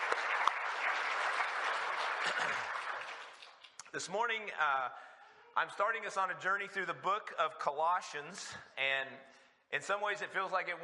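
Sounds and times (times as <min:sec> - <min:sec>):
audience applause: 0:00.0 - 0:03.8
speech: 0:03.9 - 0:10.8.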